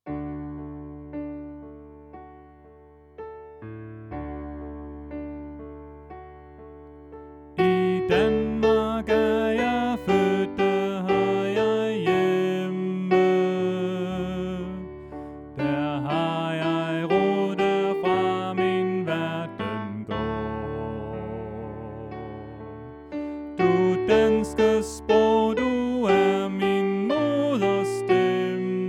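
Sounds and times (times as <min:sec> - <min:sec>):
soprano voice: 0:07.6 - 0:15.0, 0:15.6 - 0:22.9, 0:23.6 - 0:28.8.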